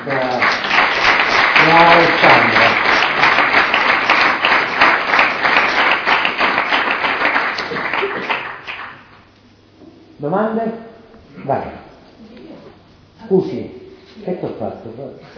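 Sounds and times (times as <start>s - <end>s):
speech: 0.0s - 0.3s, 1.7s - 2.8s, 10.2s - 10.8s, 11.5s - 11.8s, 13.3s - 15.3s
audience applause: 0.0s - 9.2s.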